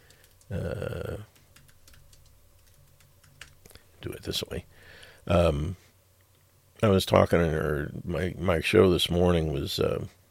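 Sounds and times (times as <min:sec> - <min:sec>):
typing on a computer keyboard: 0:00.0 - 0:00.6, 0:01.3 - 0:03.7
speech: 0:00.5 - 0:01.1, 0:04.3 - 0:05.8, 0:06.8 - 0:10.2.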